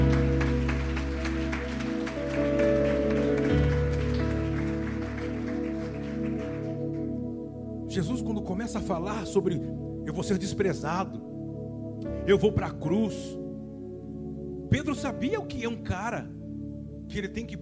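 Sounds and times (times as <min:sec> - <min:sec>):
audience applauding: 0:00.0 - 0:07.2
speech: 0:08.0 - 0:11.3, 0:12.3 - 0:13.4, 0:14.7 - 0:16.4, 0:17.1 - 0:17.5.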